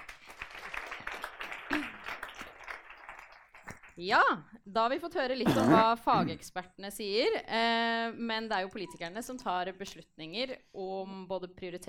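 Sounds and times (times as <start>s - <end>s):
audience applause: 0.0s - 4.0s
speech: 4.0s - 11.8s.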